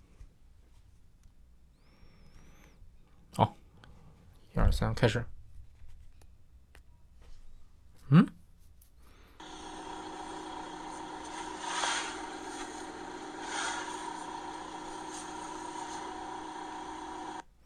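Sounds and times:
speech: 3.4 - 3.6, 4.6 - 5.3, 8.1 - 8.3
car engine idling after a cold start: 9.4 - 17.4.

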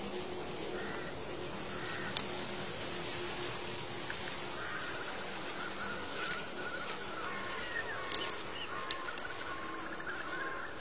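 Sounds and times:
rustling hiss: 0.0 - 10.8
faint bird calls: 0.6 - 2.4, 4.2 - 10.8.

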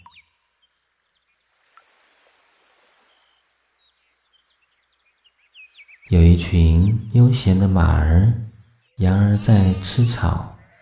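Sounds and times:
bird chirps: 0.0 - 1.6, 3.0 - 10.8
flowing stream: 1.4 - 4.0
speech: 6.1 - 10.5.

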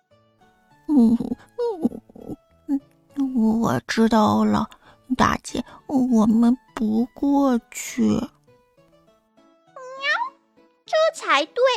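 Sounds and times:
speech: 1.0 - 1.9, 3.4 - 8.3, 11.3 - 11.7
cat meowing: 9.8 - 10.4.

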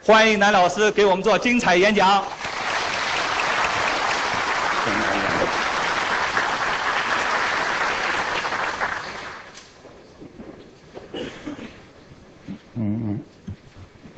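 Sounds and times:
speech: 0.0 - 2.4
warm applause from audience: 2.3 - 9.6.

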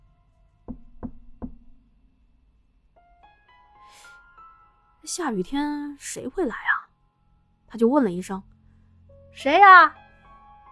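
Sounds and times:
knocking on a door: 0.7 - 2.0
speech: 5.1 - 6.7, 7.7 - 8.5, 9.4 - 10.0.

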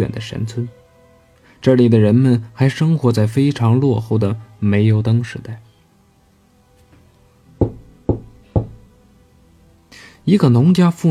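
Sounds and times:
speech: 0.0 - 0.8, 1.6 - 5.7, 10.3 - 11.0
knocking on a door: 7.6 - 8.9.

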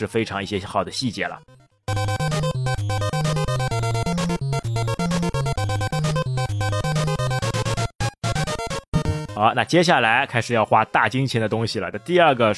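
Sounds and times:
speech: 0.0 - 2.4, 9.4 - 12.5
video game shop chiptune music with bouncing bass line: 1.4 - 9.9.

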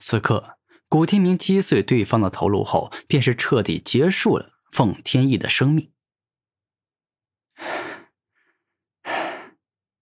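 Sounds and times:
speech: 0.1 - 6.0
man panting heavily after an exhausting fight: 7.6 - 8.2, 9.0 - 9.6.

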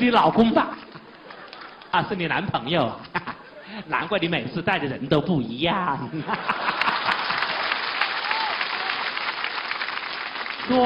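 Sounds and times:
speech: 0.0 - 0.8, 2.0 - 3.1, 3.7 - 6.7
laughter: 0.7 - 2.2, 3.0 - 4.0, 6.0 - 8.0
audience applause: 1.0 - 2.0, 6.4 - 10.8.

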